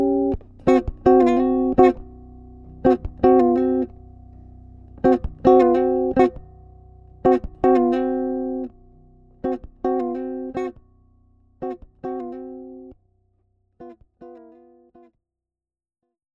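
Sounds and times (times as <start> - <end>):
blues chords: 0.0 - 13.0.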